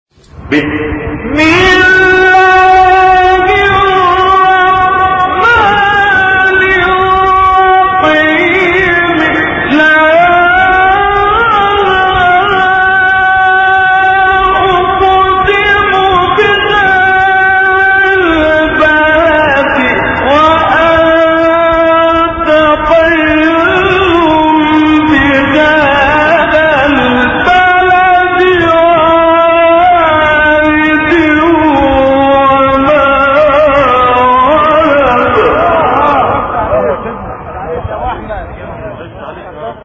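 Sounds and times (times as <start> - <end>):
recitation of a surah: 0.3 - 39.8.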